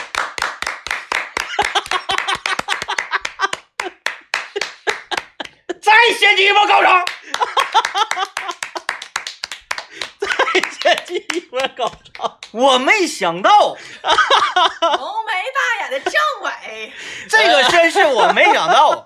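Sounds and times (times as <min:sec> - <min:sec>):
applause: 0:00.0 - 0:05.7, 0:06.8 - 0:12.6
laughter: 0:01.3 - 0:09.2, 0:09.8 - 0:12.6, 0:13.8 - 0:16.3, 0:17.0 - 0:19.0
speech: 0:06.2 - 0:07.2, 0:11.1 - 0:15.2, 0:15.9 - 0:19.0.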